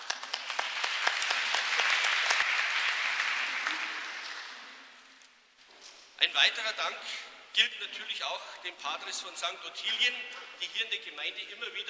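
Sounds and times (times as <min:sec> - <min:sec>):
audience applause: 0:00.0 - 0:05.0
speech: 0:06.4 - 0:11.8.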